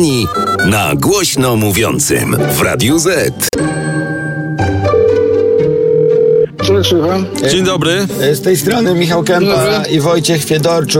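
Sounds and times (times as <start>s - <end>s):
speech: 0.0s - 3.9s, 6.9s - 10.9s
music: 0.0s - 10.9s
telephone dialing tone: 5.0s - 6.5s.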